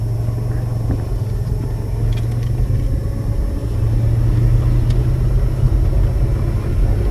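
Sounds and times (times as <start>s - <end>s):
Citroën Dyane engine running: 0.0s - 7.0s.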